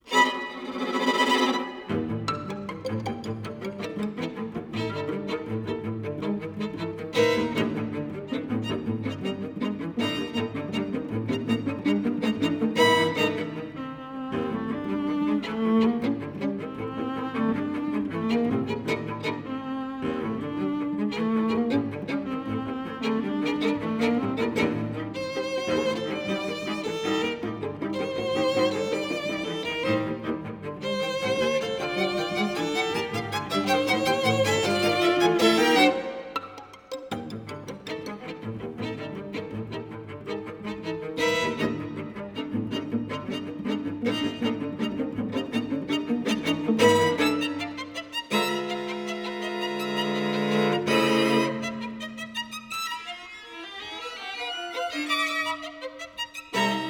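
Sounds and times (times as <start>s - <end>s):
ambient string music evoking fear: 0.0s - 56.8s.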